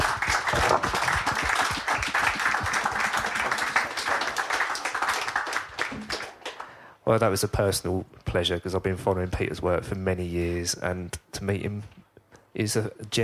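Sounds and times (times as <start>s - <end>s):
audience applause: 0.0s - 6.8s
speech: 7.1s - 12.0s, 12.6s - 13.2s.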